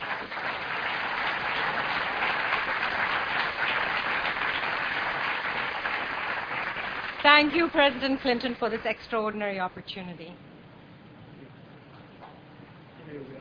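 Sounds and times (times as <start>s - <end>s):
audience applause at a pledge-signing ceremony with President Clinton: 0.0s - 9.0s
speech: 7.3s - 10.5s.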